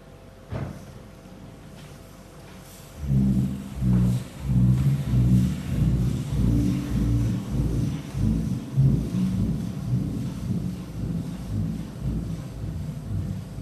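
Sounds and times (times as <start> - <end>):
deep booming drone of singing sand dune: 3.0 - 13.5.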